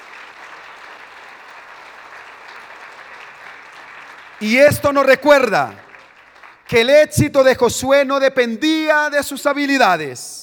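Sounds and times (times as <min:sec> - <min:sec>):
audience applause: 0:00.0 - 0:06.7
speech: 0:04.4 - 0:05.8, 0:06.7 - 0:10.4.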